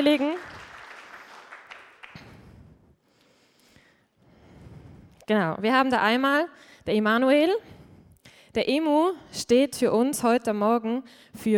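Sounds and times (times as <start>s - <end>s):
speech: 0.0s - 0.5s, 5.3s - 7.8s, 8.5s - 11.5s
crowd applauding: 0.0s - 2.4s.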